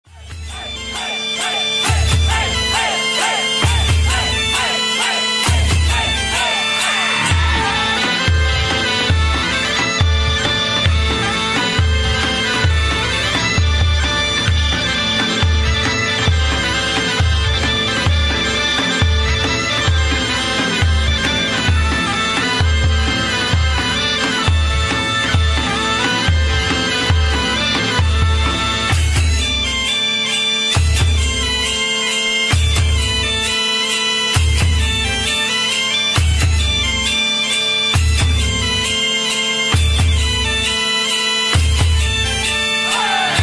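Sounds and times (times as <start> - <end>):
Mehter military band music: 0.1 - 43.4.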